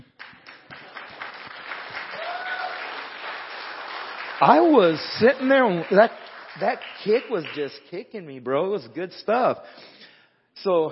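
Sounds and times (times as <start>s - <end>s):
audience applauding: 0.0s - 7.7s
speech: 4.4s - 10.0s, 10.6s - 10.8s.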